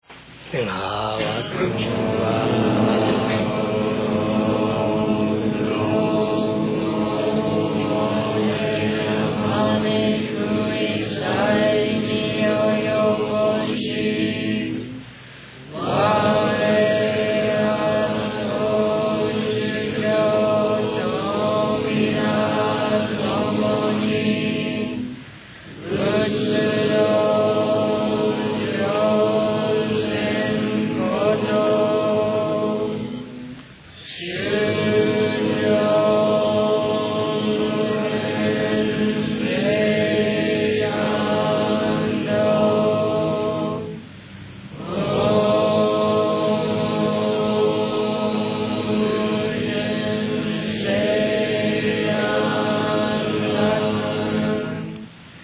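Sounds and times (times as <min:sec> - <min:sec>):
end chant: 0:00.1 - 0:55.4.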